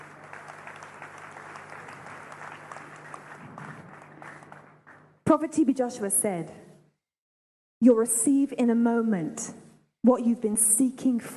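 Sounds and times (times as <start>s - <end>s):
audience clapping: 0.0s - 5.2s
speech: 5.3s - 6.7s, 7.8s - 11.3s.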